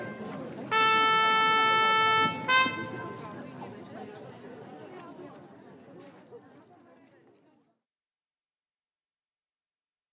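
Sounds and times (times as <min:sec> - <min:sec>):
trumpet bugle call: 0:00.0 - 0:03.2.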